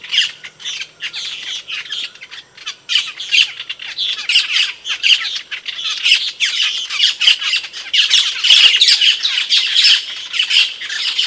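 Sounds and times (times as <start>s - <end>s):
cage bird singing harsh high chattering notes: 0.0s - 11.2s.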